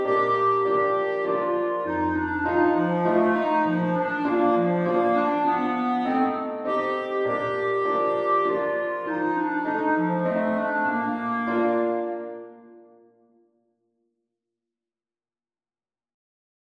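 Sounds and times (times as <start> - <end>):
clarinet: 0.0 - 13.2.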